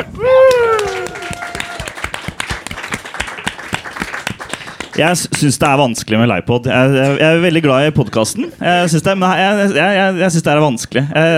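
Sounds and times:
audience applause: 0:00.2 - 0:05.2
speech: 0:05.0 - 0:11.3.

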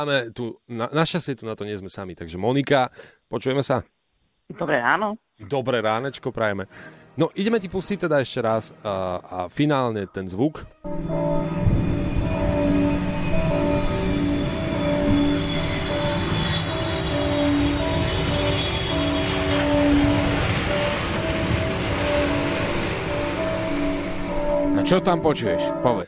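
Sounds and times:
speech: 0:00.0 - 0:11.8, 0:24.9 - 0:26.0
airplane engine starting up: 0:10.9 - 0:25.9.

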